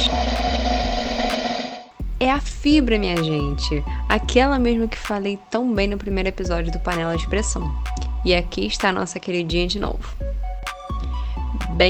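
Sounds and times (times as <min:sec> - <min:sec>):
drum roll sound effect: 0:00.0 - 0:03.6, 0:04.2 - 0:05.2, 0:05.8 - 0:07.4, 0:08.3 - 0:11.0
speech: 0:02.2 - 0:10.4.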